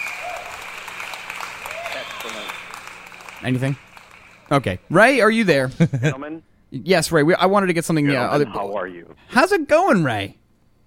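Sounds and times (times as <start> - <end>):
applause sound effect: 0.0 - 4.7
speech: 2.2 - 2.6, 3.4 - 3.9, 4.5 - 10.4.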